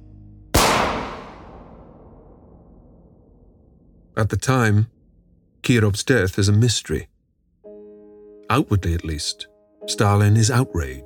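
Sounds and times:
low hum: 0.0s - 7.6s
gunshot from a gunman firing into the back of a man's neck: 0.6s - 2.7s
speech: 4.2s - 4.9s, 5.6s - 7.1s, 8.5s - 11.0s.

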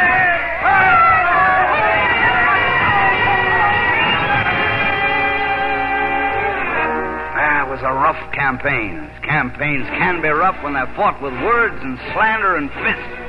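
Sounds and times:
large crowd cheering and shouting at a political rally: 0.0s - 6.8s
speech: 8.1s - 13.2s.

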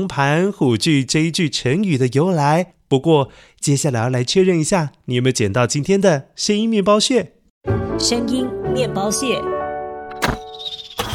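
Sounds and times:
speech: 0.0s - 9.6s
arrow shot from a bow: 10.2s - 11.1s.

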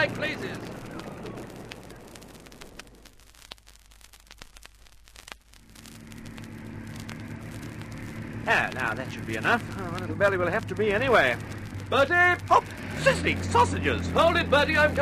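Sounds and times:
aircraft engines starting up and warming: 0.0s - 2.1s, 5.8s - 15.0s
speech: 8.5s - 15.0s.

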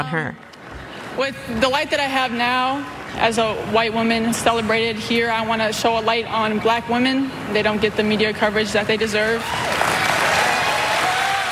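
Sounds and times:
speech: 0.0s - 0.5s, 1.2s - 9.8s
audience clapping and cheering: 9.4s - 11.5s.

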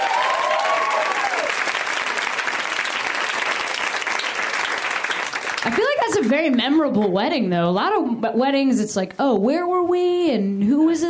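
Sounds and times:
audience applause for a couple: 0.0s - 6.4s
speech: 5.7s - 11.0s.

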